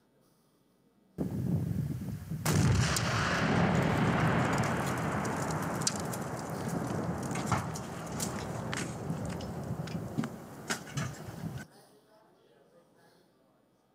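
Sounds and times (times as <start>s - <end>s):
tannerite target exploding after being shot with a gun: 1.2s - 11.6s.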